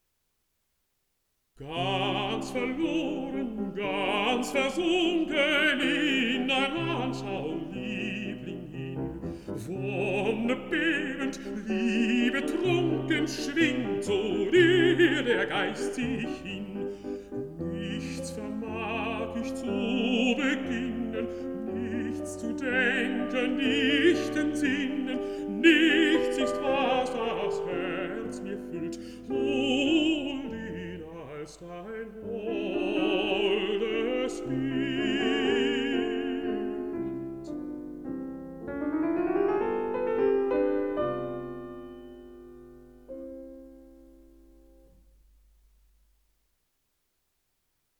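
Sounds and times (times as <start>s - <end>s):
person singing: 1.6s - 37.7s
piano: 1.6s - 46.2s.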